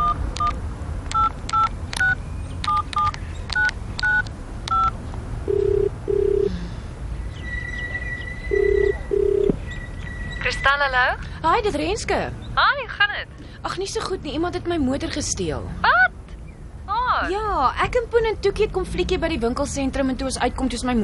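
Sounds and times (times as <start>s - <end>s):
telephone keypad tones beeping as a number is dialed: 0.0s - 6.5s, 7.8s - 10.6s
low telephone ringing tone in paired bursts: 5.5s - 6.5s, 7.5s - 10.6s
speech: 10.9s - 16.0s, 17.2s - 21.0s.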